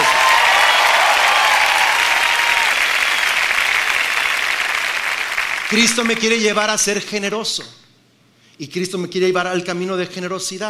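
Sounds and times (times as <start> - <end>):
audience applause: 0.0 - 6.4
speech: 5.7 - 7.8, 8.6 - 10.6.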